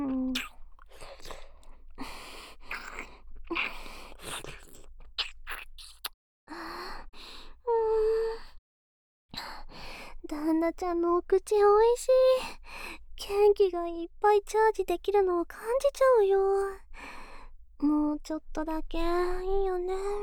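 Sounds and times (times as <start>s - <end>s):
breathy gasps and soft moans: 0.0s - 8.6s, 9.3s - 10.3s, 12.4s - 13.2s, 16.8s - 17.8s
wet kissing and smacking in girlfriend roleplay: 0.3s - 1.5s, 2.7s - 6.2s
speech: 10.7s - 12.6s, 13.3s - 16.8s, 17.8s - 20.2s.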